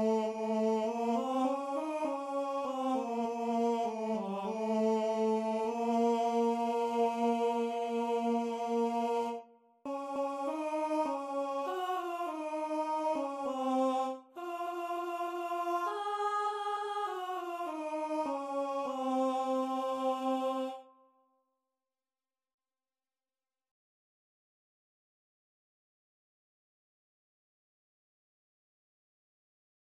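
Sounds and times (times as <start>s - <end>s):
tenor singing: 0.0s - 20.8s.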